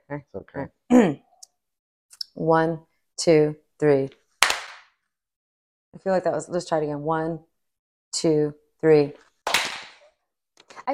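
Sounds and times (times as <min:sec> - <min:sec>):
speech: 0:00.1 - 0:01.3, 0:02.4 - 0:04.2, 0:06.0 - 0:07.5, 0:08.1 - 0:09.3
hands clapping in unison: 0:04.4 - 0:04.9, 0:09.5 - 0:10.0.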